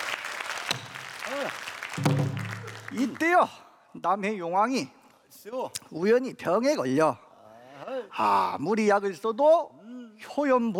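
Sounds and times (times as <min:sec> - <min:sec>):
audience applause: 0:00.0 - 0:03.4
speech: 0:01.3 - 0:02.1, 0:02.9 - 0:07.2, 0:08.1 - 0:10.7.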